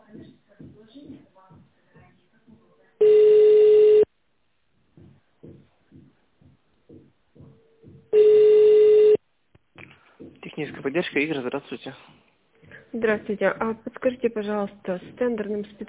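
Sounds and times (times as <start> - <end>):
telephone ringback tone while a call to a technical support line is transferred: 3.0 - 4.1, 8.2 - 9.2
speech: 10.8 - 12.2, 12.9 - 15.8.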